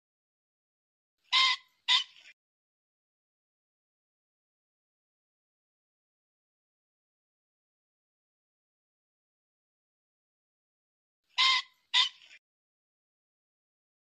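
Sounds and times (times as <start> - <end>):
pheasant squawking: 1.3 - 2.4, 11.3 - 12.4.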